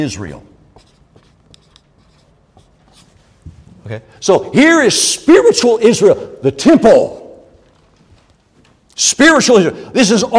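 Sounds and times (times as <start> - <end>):
speech: 0.0 - 0.5, 3.9 - 7.2, 9.0 - 10.3
pen writing something down: 0.7 - 3.2.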